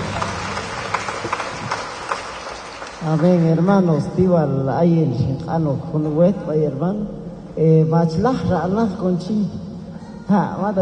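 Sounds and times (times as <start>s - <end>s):
rhythmic crowd applause: 0.0s - 3.9s
speech: 3.0s - 9.7s, 10.3s - 10.7s.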